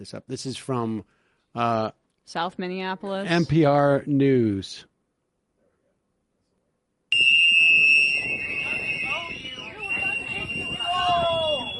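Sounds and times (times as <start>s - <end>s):
speech: 0.0s - 4.9s
whistles blowing: 7.1s - 11.7s.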